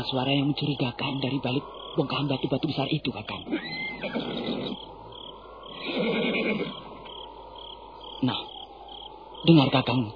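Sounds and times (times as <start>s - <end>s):
speech: 0.0s - 4.9s, 8.2s - 8.5s, 9.4s - 10.1s
horse neighing: 3.4s - 5.0s, 5.7s - 7.2s.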